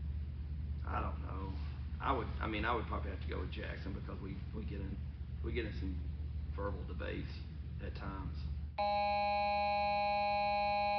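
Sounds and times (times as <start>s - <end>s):
speech: 0.9s - 10.9s
buzzer ending the Green Wave Coaches Show: 8.8s - 10.9s.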